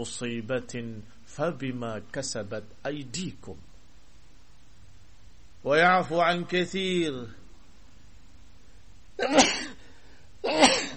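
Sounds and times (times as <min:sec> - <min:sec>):
speech: 0:00.0 - 0:03.7, 0:05.6 - 0:07.4, 0:09.2 - 0:09.7
person sneezing: 0:09.2 - 0:10.9.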